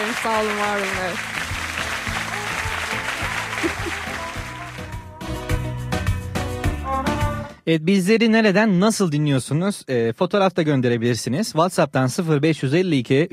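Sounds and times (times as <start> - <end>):
speech: 0.0 - 1.6, 7.7 - 13.3
applause: 0.0 - 5.1
upbeat music with pulsing bass line: 0.0 - 7.6
laughter: 3.3 - 4.4.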